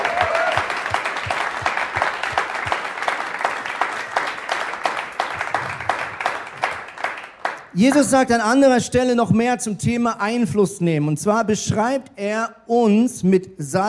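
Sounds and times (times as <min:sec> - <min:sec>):
audience applause: 0:00.0 - 0:07.7
speech: 0:07.8 - 0:13.8.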